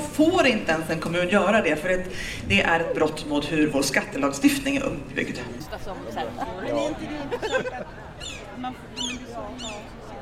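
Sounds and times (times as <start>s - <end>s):
crowd chatter: 0.0s - 10.2s
speech: 0.2s - 10.0s
laughter: 6.0s - 8.3s
seagulls calling: 7.3s - 10.0s.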